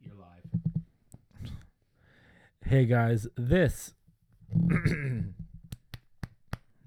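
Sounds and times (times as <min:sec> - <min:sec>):
speech: 0:02.7 - 0:04.0, 0:04.7 - 0:05.2
throat clearing: 0:04.6 - 0:05.4.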